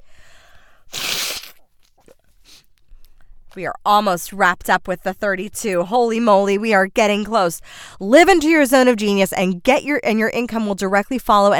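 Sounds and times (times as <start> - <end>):
nose blowing: 0.8 - 1.7
speech: 3.6 - 11.5.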